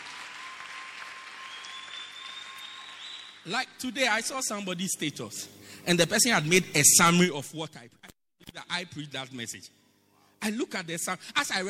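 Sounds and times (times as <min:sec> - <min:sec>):
audience clapping: 0:00.0 - 0:03.6
speech: 0:03.4 - 0:08.1, 0:08.8 - 0:09.8, 0:10.4 - 0:11.6.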